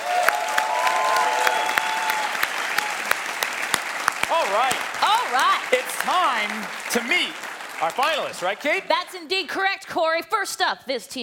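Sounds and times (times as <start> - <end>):
audience applause: 0.0 - 9.0
speech: 4.6 - 11.2.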